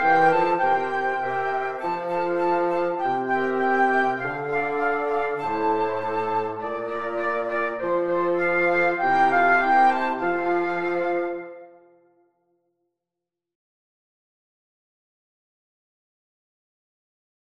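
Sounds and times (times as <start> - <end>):
wind quartet playing: 0.0 - 11.7.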